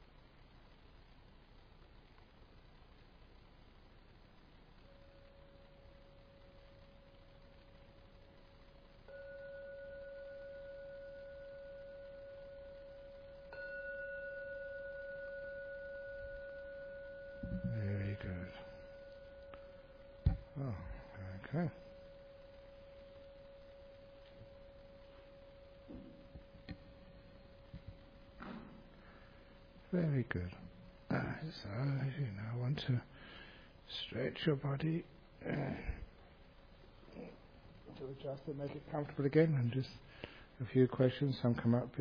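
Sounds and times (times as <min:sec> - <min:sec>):
gong ringing to conclude the meditation: 0:09.1 - 0:22.6
speech: 0:30.0 - 0:30.6, 0:31.5 - 0:33.0, 0:34.1 - 0:36.0, 0:38.1 - 0:41.9.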